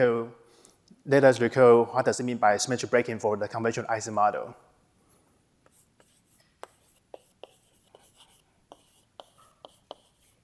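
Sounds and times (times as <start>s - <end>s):
speech: 1.0s - 4.7s
hand writing out notes during a physics lecture: 5.7s - 10.4s.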